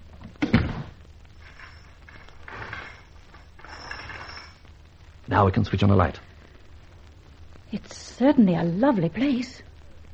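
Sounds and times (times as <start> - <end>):
door being shut: 0.4 - 1.0
speech: 5.3 - 6.3, 7.7 - 9.7.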